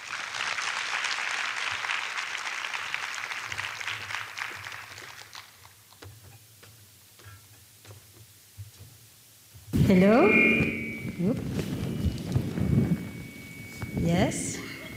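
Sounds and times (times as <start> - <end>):
audience applause welcoming a speaker on stage: 0.0 - 6.0
speech: 9.9 - 11.8, 14.0 - 14.6.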